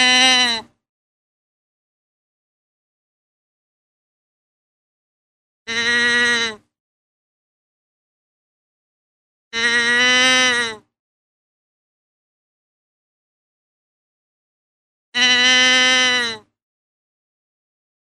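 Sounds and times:
deer bleating: 0:00.0 - 0:00.7, 0:05.7 - 0:06.6, 0:09.6 - 0:10.8, 0:15.2 - 0:16.4.

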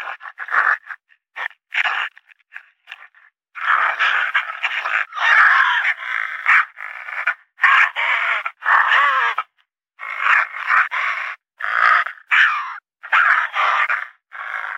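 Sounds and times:
raccoon and fox fighting: 0:03.6 - 0:14.7.

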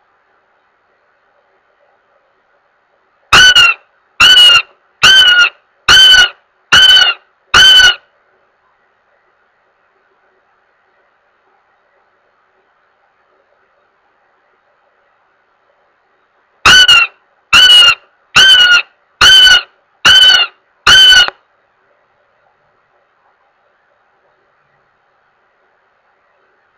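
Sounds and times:
goshawk giving harsh level wailing notes: 0:03.3 - 0:08.0, 0:16.6 - 0:21.4.

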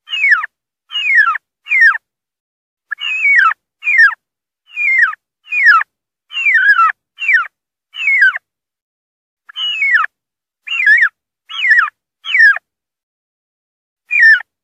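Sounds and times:
wild turkey distress calling: 0:00.0 - 0:02.0, 0:02.9 - 0:08.4, 0:09.5 - 0:10.1, 0:10.7 - 0:12.6, 0:14.1 - 0:14.5.

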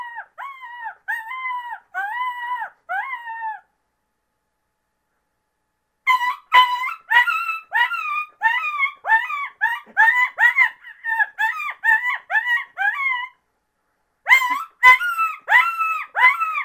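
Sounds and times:
coyote yipping: 0:00.0 - 0:03.7, 0:06.1 - 0:13.4, 0:14.3 - 0:16.6.

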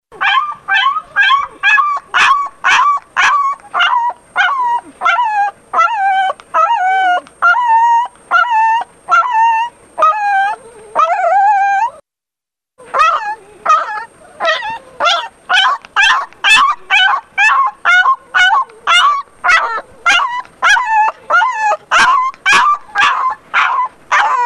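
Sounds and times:
distressed dog whining yelps: 0:00.2 - 0:12.0, 0:12.8 - 0:24.4.

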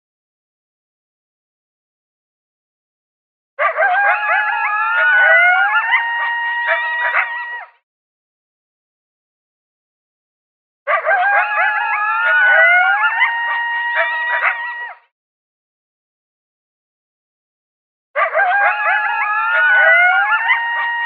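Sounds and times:
coyotes howling and yipping: 0:03.6 - 0:07.8, 0:10.9 - 0:15.0, 0:18.2 - 0:21.0.

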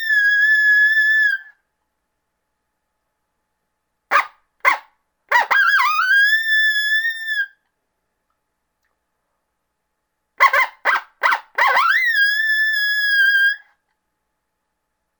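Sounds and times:
coyote yipping and howling: 0:00.0 - 0:01.5, 0:04.1 - 0:07.6, 0:10.4 - 0:13.7.

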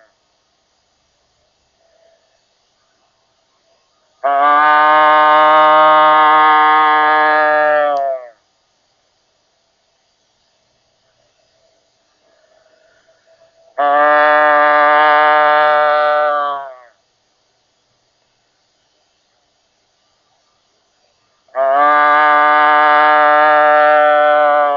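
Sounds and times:
doe bleating: 0:04.2 - 0:08.3, 0:13.8 - 0:16.9, 0:21.5 - 0:24.7.

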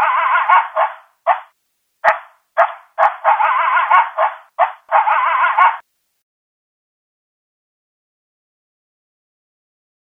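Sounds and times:
coyote yips and barks: 0:00.0 - 0:05.8.

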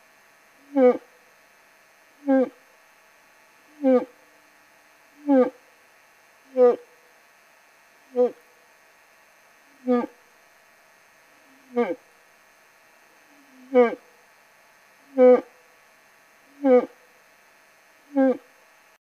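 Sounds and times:
old bull moose calling in rut: 0:00.6 - 0:01.1, 0:02.2 - 0:02.6, 0:03.7 - 0:04.2, 0:05.2 - 0:05.6, 0:06.5 - 0:06.9, 0:08.2 - 0:08.4, 0:09.8 - 0:10.2, 0:11.4 - 0:12.1, 0:13.3 - 0:14.0, 0:15.1 - 0:15.6, 0:16.5 - 0:17.0, 0:18.1 - 0:18.5.

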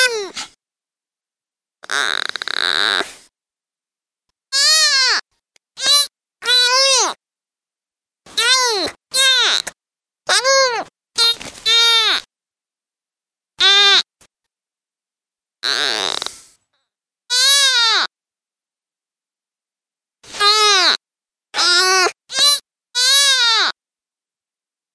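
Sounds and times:
deer fawn distress calls, loud harsh bleats: 0:01.8 - 0:03.1, 0:04.6 - 0:05.2, 0:05.8 - 0:07.2, 0:08.3 - 0:09.7, 0:10.3 - 0:12.2, 0:13.6 - 0:14.1, 0:15.6 - 0:16.4, 0:17.3 - 0:18.1, 0:20.3 - 0:21.0, 0:21.6 - 0:23.7.

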